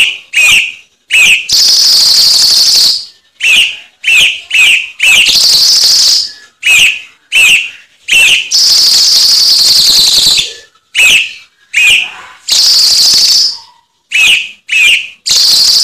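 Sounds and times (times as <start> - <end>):
cucak cungkok singing upslurred whistles: 3.4 - 15.8.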